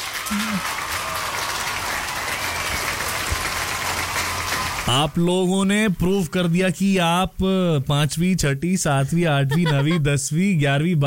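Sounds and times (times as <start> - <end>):
applause: 0.0 - 5.2
speech: 4.9 - 11.0
laughter: 9.0 - 10.4.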